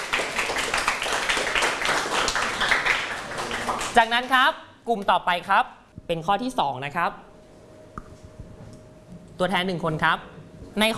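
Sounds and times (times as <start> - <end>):
class applauding: 0.0 - 4.3
speech: 4.0 - 7.3, 9.4 - 10.9.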